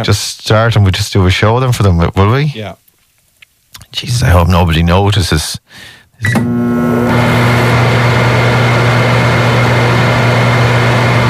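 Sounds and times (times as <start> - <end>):
speech: 0.0 - 2.8, 3.9 - 7.6
microwave oven running: 6.3 - 11.2.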